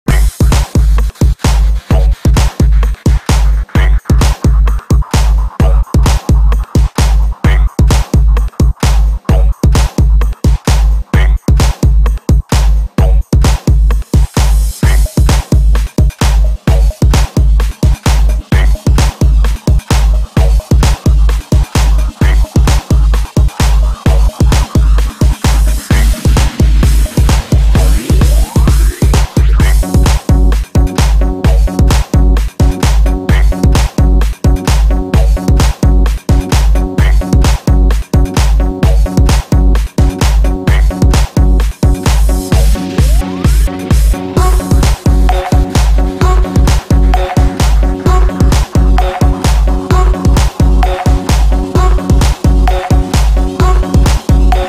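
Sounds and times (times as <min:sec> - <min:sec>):
breakbeat remix: 0:00.0 - 0:54.6.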